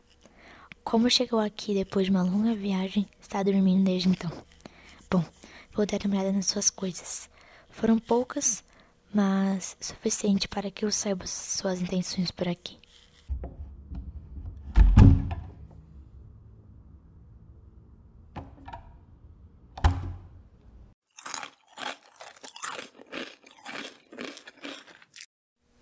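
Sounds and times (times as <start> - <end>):
speech: 0.9 - 4.5, 5.1 - 12.8
dull knocks and thuds: 13.3 - 15.7
snack chips being crunched and chewed: 21.1 - 25.3.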